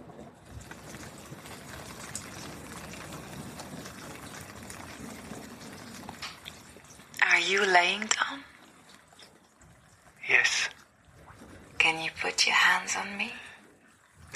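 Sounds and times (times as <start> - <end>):
steady rain falling outside a window: 0.0 - 14.3
speech: 7.5 - 8.2.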